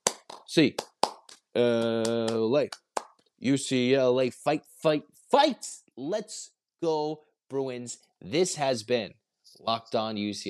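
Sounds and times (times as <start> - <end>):
rhythmic hand clapping: 0.0 - 3.2
speech: 0.5 - 0.9, 1.6 - 2.8, 3.4 - 10.4.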